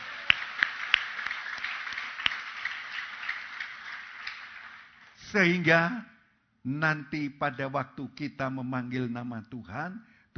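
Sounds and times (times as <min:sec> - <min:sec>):
audience clapping hands: 0:00.0 - 0:05.4
speech: 0:05.3 - 0:10.3.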